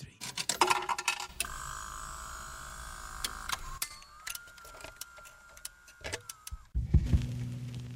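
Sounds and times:
jukebox starting up with clinks, ticks and mechanical whirring: 0.2 - 6.8
low thump: 6.8 - 7.8.

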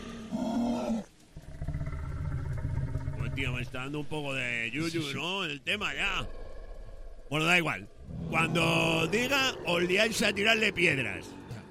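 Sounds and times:
guttural roar: 0.0 - 3.8, 5.9 - 11.7
low rumbling growl: 1.4 - 4.3, 5.8 - 11.7
speech: 3.4 - 6.4, 7.3 - 11.4.

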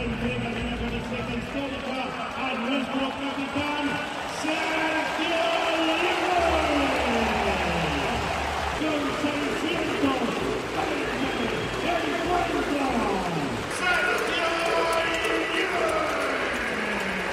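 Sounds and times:
crowd ovation in the Palacio de los Deportes: 0.0 - 17.3.

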